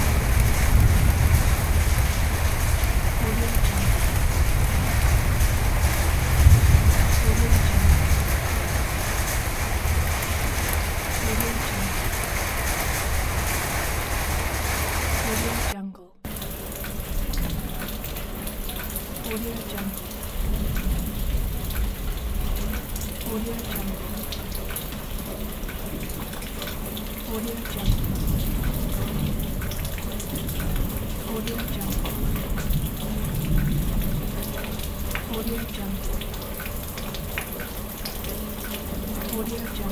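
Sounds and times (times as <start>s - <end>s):
thunder: 0.0s - 18.1s, 20.2s - 23.2s, 27.8s - 37.4s
rain: 0.0s - 39.8s.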